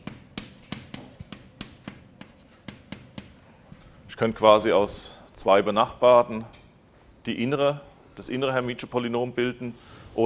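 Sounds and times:
writing tool tapping and scratching while writing an equation by hand: 0.0s - 3.4s
speech: 4.2s - 6.6s, 7.2s - 10.2s.

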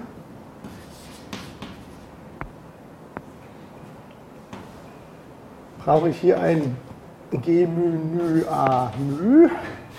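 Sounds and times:
writing equations on a board: 0.6s - 2.1s, 8.1s - 9.3s
speech: 5.8s - 9.8s.

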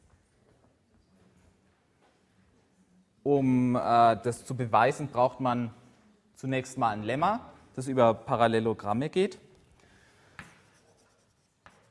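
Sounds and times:
speech: 3.2s - 5.8s, 6.4s - 9.4s
hand writing something down during a mathematics lecture: 10.6s - 11.8s.

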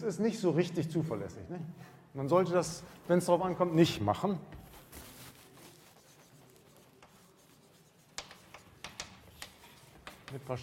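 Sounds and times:
speech: 0.0s - 4.7s, 10.3s - 10.6s
handwriting with a pen: 6.0s - 10.3s.

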